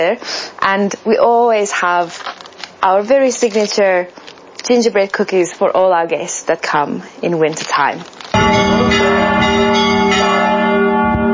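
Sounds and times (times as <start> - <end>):
speech: 0.0 - 8.2
church bells ringing: 8.4 - 11.3.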